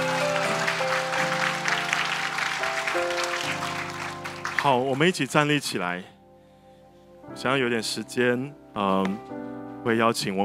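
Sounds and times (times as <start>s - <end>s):
congregation clapping hands in praise during a church service: 0.0s - 5.5s
sustained keyboard chords: 0.0s - 10.4s
speech: 4.6s - 6.1s, 7.4s - 10.4s.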